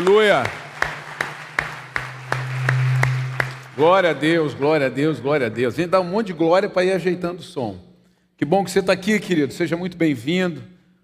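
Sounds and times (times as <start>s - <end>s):
speech: 0.0s - 0.6s, 3.8s - 10.7s
audience applause: 0.0s - 4.3s.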